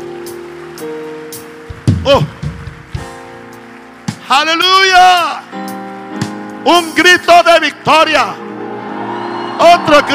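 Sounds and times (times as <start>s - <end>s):
loud audience applause: 0.0s - 5.5s, 8.7s - 10.1s
speech: 2.0s - 2.4s, 4.3s - 5.6s, 6.6s - 8.4s, 9.6s - 10.1s.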